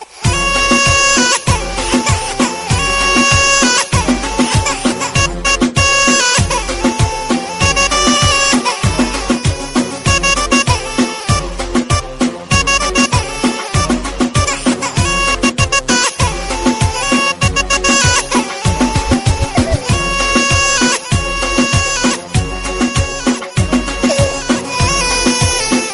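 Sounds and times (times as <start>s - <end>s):
drumbeat: 0.3s - 7.1s, 7.6s - 15.8s, 16.7s - 25.7s.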